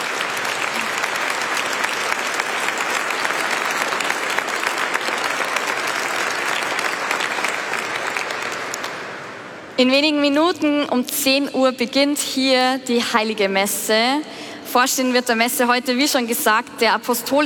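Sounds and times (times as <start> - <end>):
large audience applauding: 0.0 - 9.8
speech: 9.8 - 17.4.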